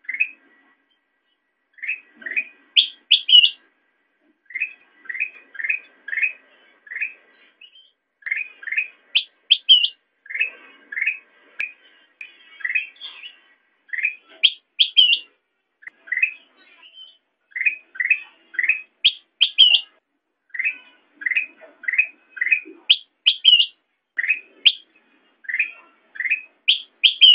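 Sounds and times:
sooty-headed bulbul chirping: 0:01.8 - 0:03.6, 0:04.5 - 0:11.7, 0:13.9 - 0:16.4, 0:17.5 - 0:27.3.

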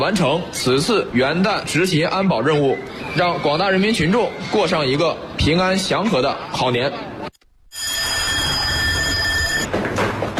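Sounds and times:
speech: 0:00.0 - 0:07.1
electric bell for emergency assembly: 0:07.7 - 0:09.7.

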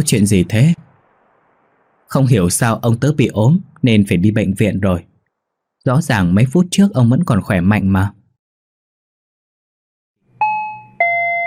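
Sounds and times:
speech: 0:00.0 - 0:00.8, 0:02.1 - 0:05.1, 0:05.8 - 0:08.2
doorbell ringing at a house door: 0:10.4 - 0:11.4.

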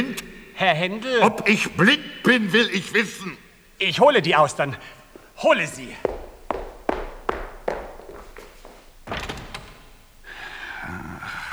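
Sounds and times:
speech: 0:00.6 - 0:06.2
footsteps: 0:03.7 - 0:10.6
door slamming: 0:05.1 - 0:10.7.

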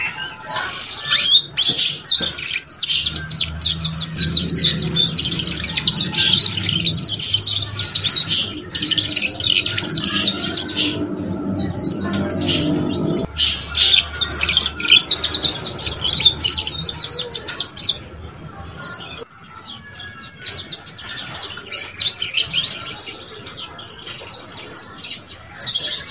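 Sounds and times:
Belgian canary singing: 0:00.0 - 0:26.0
faint low hum: 0:02.2 - 0:18.7.

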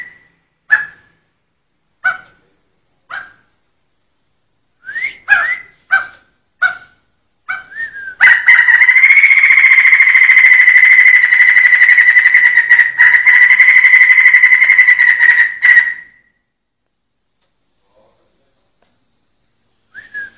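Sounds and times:
Sumatran laughingthrush rolling song: 0:08.2 - 0:16.2.

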